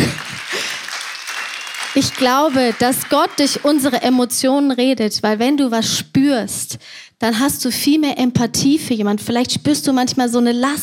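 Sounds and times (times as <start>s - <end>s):
audience clapping: 0.0s - 4.6s
speech: 2.0s - 10.8s.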